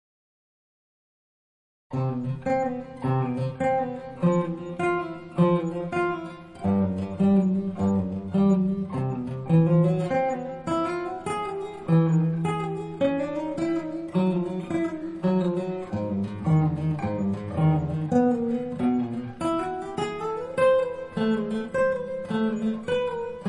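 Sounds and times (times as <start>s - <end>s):
scherzo etude: 2.0s - 23.4s.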